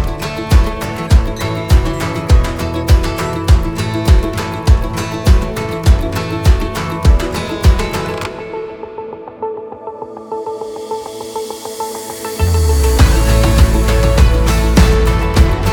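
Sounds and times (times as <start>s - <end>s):
summer countryside acoustic stomp music: 0.0s - 8.5s, 12.8s - 15.7s.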